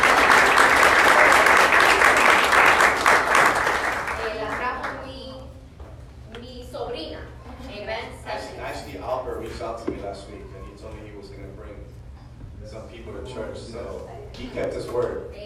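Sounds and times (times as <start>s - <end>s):
church congregation applauding a newcomer: 0.0s - 5.1s.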